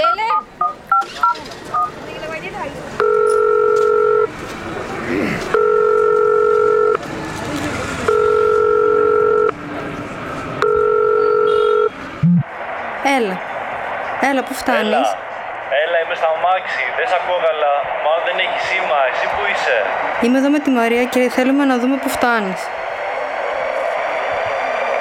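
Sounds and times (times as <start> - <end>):
telephone dialing beeps: 0.0 - 2.0, 3.0 - 4.3, 5.6 - 7.0, 8.1 - 9.6, 10.6 - 12.4
low murmur: 0.0 - 24.9
telephone ringback tone: 3.0 - 4.3, 5.5 - 7.0, 8.0 - 9.6, 10.6 - 12.5
speech: 14.6 - 15.2, 16.1 - 22.8.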